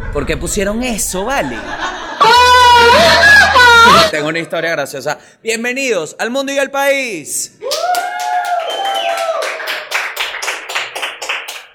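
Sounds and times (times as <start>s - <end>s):
speech: 0.1s - 8.0s
laughter: 1.4s - 4.1s
people cheering: 2.0s - 4.1s, 7.6s - 11.1s
audience applause: 7.7s - 11.7s.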